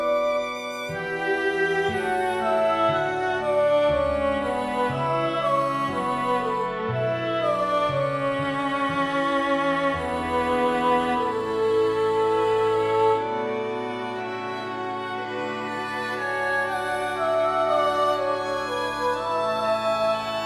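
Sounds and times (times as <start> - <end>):
soprano trio singing: 0.0 - 20.4
strings playing: 0.0 - 20.4.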